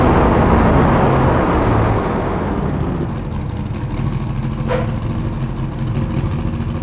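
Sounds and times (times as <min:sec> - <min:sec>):
vehicles throttling off: 0:00.0 - 0:06.8.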